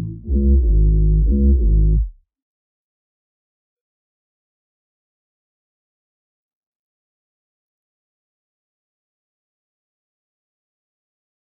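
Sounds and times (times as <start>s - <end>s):
bass stem: 0.0s - 2.2s.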